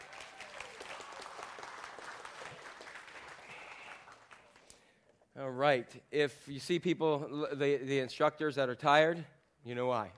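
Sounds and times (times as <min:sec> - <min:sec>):
church audience applauding a performer: 0:00.0 - 0:04.8
speech: 0:05.4 - 0:10.1.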